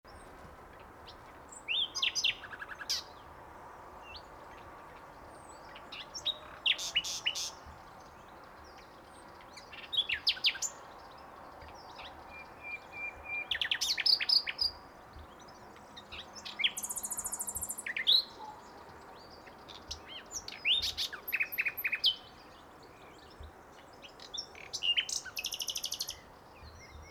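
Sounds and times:
common nightingale song: 0:00.1 - 0:27.1.

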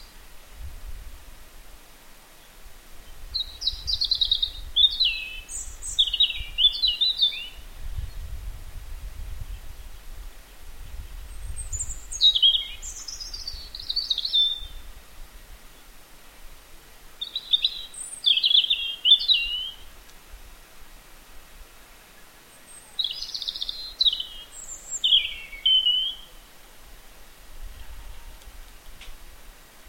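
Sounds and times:
European robin singing: 0:02.4 - 0:08.4, 0:11.2 - 0:14.9, 0:17.2 - 0:20.2, 0:21.8 - 0:26.5.

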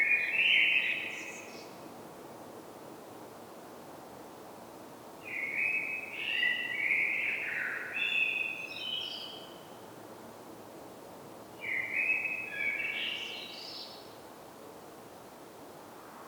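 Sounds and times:
Common blackbird song: 0:00.0 - 0:01.7, 0:05.3 - 0:09.8, 0:11.6 - 0:14.1.

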